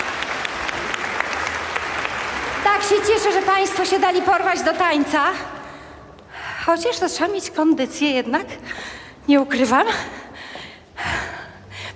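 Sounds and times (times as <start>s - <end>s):
audience clapping for dancers at a live performance: 0.0s - 5.3s
speech: 2.8s - 5.6s, 6.6s - 10.2s.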